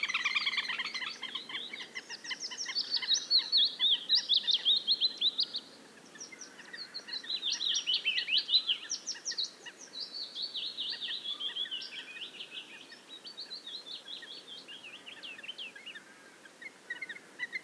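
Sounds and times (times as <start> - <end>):
bird song of rapid trilled and chattering phrases: 0.0 - 17.6.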